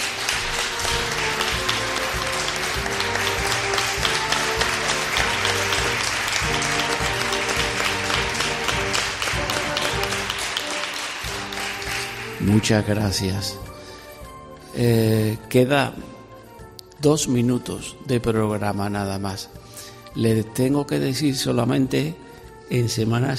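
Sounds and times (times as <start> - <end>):
audience applause: 0.0 - 12.5
speech: 12.5 - 13.7, 14.8 - 16.2, 17.0 - 19.6, 20.2 - 23.3.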